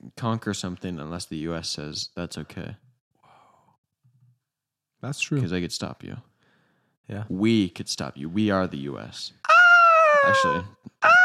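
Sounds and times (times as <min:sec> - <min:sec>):
speech: 0:00.2 - 0:02.8, 0:05.0 - 0:06.3, 0:07.1 - 0:09.5, 0:10.2 - 0:11.2
person imitating an eagle's screech: 0:09.5 - 0:11.2.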